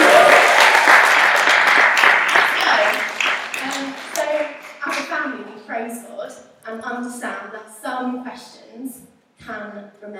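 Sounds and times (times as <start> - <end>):
audience applause: 0.0 - 5.0
speech: 7.4 - 10.1.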